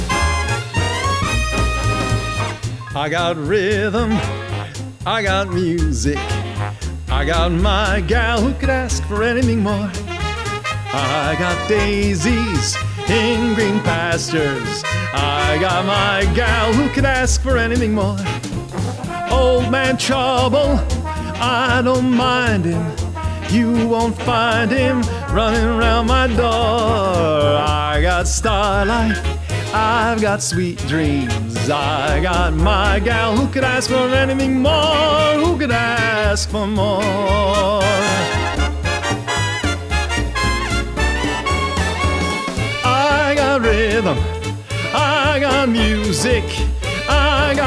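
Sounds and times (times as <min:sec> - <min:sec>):
vocals: 0:00.1 - 0:40.3, 0:40.9 - 0:47.6.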